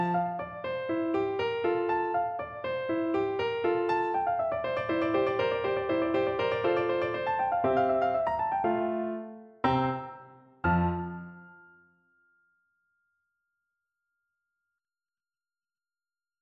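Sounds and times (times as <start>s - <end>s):
piano: 0.0s - 12.6s.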